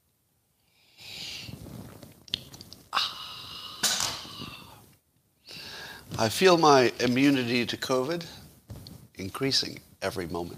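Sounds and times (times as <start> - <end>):
sipping a drink: 1.2 - 4.8
speech: 6.2 - 8.4, 9.2 - 10.5.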